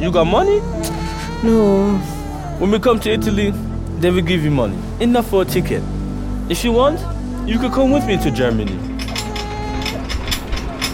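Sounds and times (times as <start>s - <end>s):
speech: 0.0s - 8.9s
anchor being hauled in with ratcheting clank: 8.4s - 10.9s.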